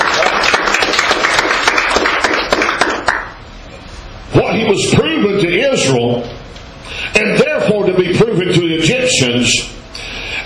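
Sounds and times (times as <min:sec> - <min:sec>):
audience hand clapping: 0:00.0 - 0:03.4
speech: 0:04.4 - 0:06.4, 0:07.2 - 0:09.8.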